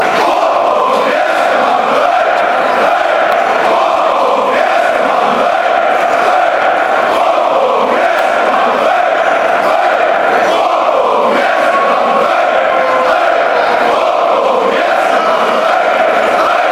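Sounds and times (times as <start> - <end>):
football fans chanting: 0.0 - 16.6.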